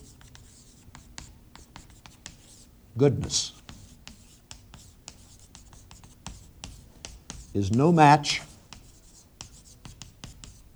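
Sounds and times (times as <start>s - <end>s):
pen writing on paper: 0.0s - 10.7s
quiet hum: 0.0s - 10.7s
speech: 3.0s - 3.6s, 7.6s - 8.5s.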